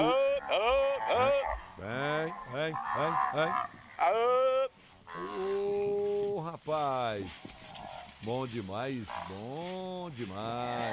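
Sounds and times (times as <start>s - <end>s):
herd of cattle mooing from a video played on a phone: 0.0s - 6.3s, 9.0s - 9.7s, 10.4s - 10.9s
speech: 2.7s - 4.5s, 6.6s - 7.5s, 8.2s - 10.9s.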